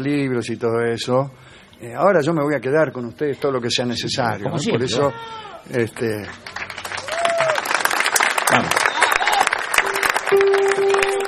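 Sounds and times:
speech: 0:00.0 - 0:06.6, 0:08.5 - 0:08.8
audience applause at a live comedy-style event: 0:06.2 - 0:11.2.

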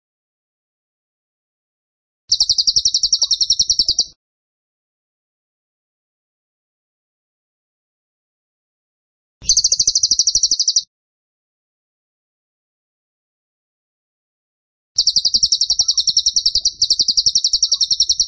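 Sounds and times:
bird song rattling notes: 0:02.3 - 0:04.1, 0:09.4 - 0:10.8, 0:15.0 - 0:18.2.

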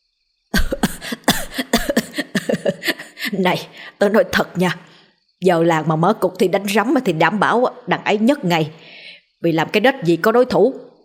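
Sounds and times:
violent choking cough: 0:00.6 - 0:03.2
speech: 0:03.4 - 0:11.0.

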